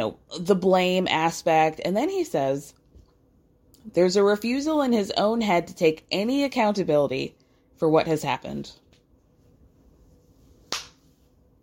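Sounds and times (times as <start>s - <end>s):
speech: 0.0s - 2.8s, 3.8s - 8.8s
single hand clap: 10.7s - 11.0s.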